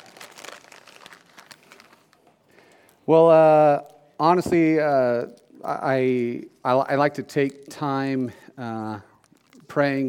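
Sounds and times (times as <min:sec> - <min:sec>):
cough drop wrapper crinkling: 0:00.0 - 0:04.0, 0:06.8 - 0:10.0
speech: 0:03.1 - 0:09.1, 0:09.8 - 0:10.0.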